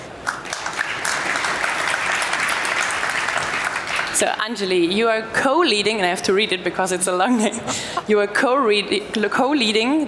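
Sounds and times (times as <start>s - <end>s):
audience applause welcoming a guest onto a stage: 0.2s - 4.2s
speech: 4.2s - 10.0s.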